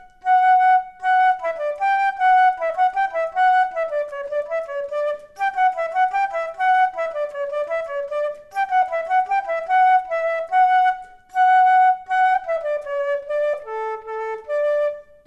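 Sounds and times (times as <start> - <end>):
flute duet: 0.0 - 15.2.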